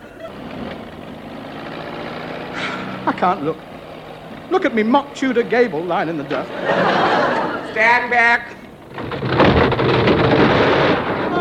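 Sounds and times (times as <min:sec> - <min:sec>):
laughter: 0:00.0 - 0:00.8, 0:02.5 - 0:03.6, 0:05.6 - 0:08.8
heavy bulldozer diesel engine rumbling: 0:00.0 - 0:11.3
speech: 0:03.1 - 0:03.7, 0:04.5 - 0:08.6.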